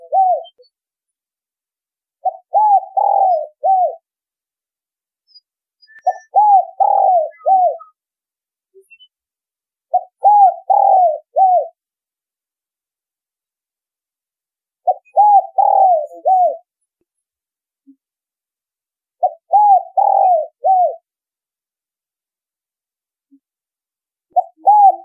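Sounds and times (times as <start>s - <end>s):
spotted dove cooing: 0.0s - 0.6s, 2.2s - 4.0s, 6.0s - 8.0s, 9.9s - 11.8s, 14.9s - 16.7s, 19.2s - 21.0s, 24.3s - 25.0s.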